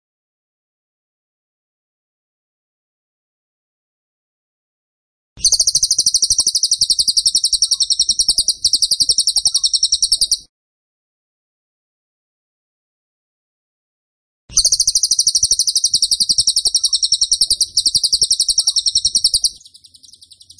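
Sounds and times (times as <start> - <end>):
Tembakan bird song: 5.4 - 10.5, 14.5 - 20.5.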